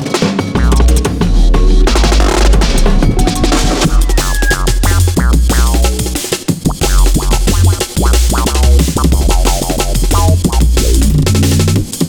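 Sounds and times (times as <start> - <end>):
kakapo booming: 0.6 - 12.0.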